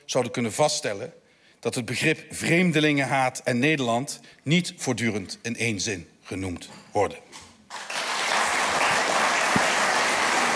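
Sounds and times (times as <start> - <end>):
speech: 0.1 - 7.4
audience applauding loudly: 7.7 - 10.5.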